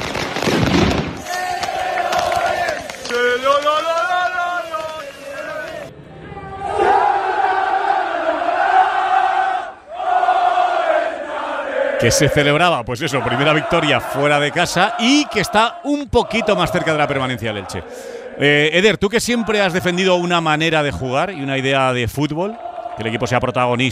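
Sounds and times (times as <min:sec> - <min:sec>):
firecrackers crackling: 0:00.0 - 0:05.9
large crowd of football fans chanting and singing in unison: 0:01.2 - 0:23.9
speech: 0:12.0 - 0:23.9.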